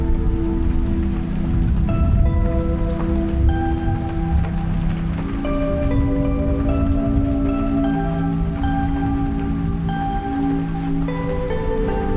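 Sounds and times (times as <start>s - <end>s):
nature sounds: 0.0s - 12.1s.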